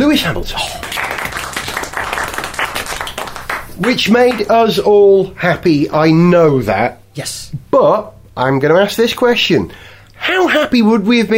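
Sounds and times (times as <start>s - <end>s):
speech: 0.1s - 0.9s, 3.8s - 11.3s
gentle round of applause: 0.6s - 4.5s.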